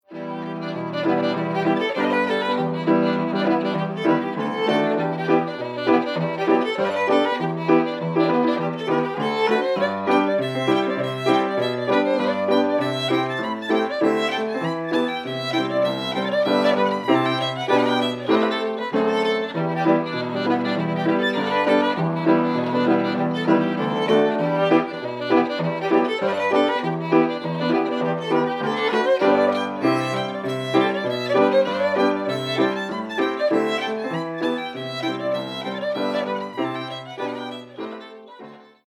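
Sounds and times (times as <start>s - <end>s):
fiddle tune: 0.0s - 38.8s.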